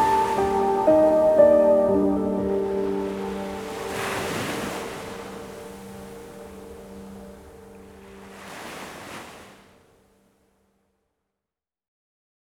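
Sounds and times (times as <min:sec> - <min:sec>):
piano: 0:00.0 - 0:08.7
beach waves: 0:00.0 - 0:10.0.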